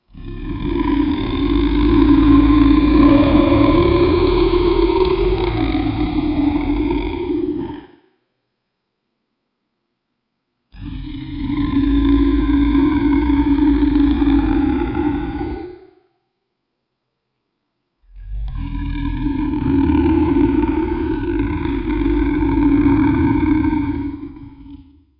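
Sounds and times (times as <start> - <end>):
beastly monster roaring: 0.1 - 8.0, 10.8 - 16.0, 18.1 - 25.1.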